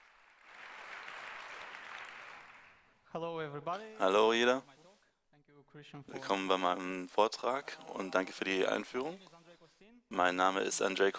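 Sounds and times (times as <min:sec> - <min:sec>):
conference audience applause for a speaker: 0:00.0 - 0:02.9
speech: 0:03.1 - 0:04.8, 0:05.7 - 0:09.4, 0:10.1 - 0:11.1.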